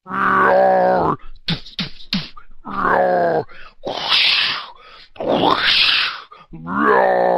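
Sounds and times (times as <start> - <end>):
person groaning as fight sound effect: 0.1 - 7.3
person grunting as fight sound effect: 0.1 - 7.3
voice imitating sharp smacks: 1.4 - 2.4.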